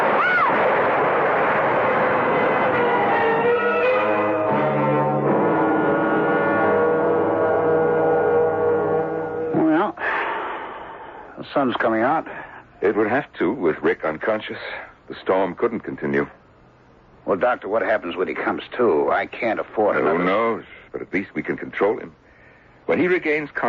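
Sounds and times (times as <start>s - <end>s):
tree crashing down: 0.0s - 3.5s
droning tones: 0.0s - 10.0s
speech: 11.5s - 16.4s, 17.3s - 22.2s, 22.9s - 23.6s.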